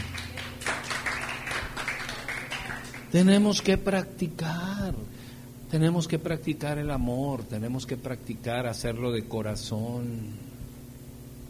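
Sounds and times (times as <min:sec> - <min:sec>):
audience applause: 0:00.0 - 0:03.1
speech: 0:03.1 - 0:10.5.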